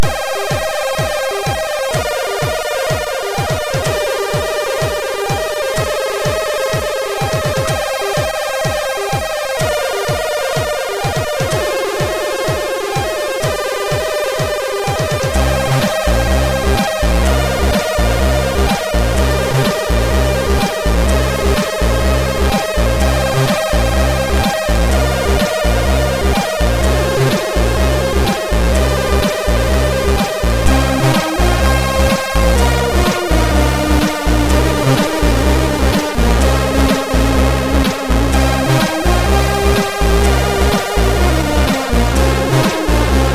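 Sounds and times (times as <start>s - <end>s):
MOS6581 SID chip music: 0.0s - 43.3s.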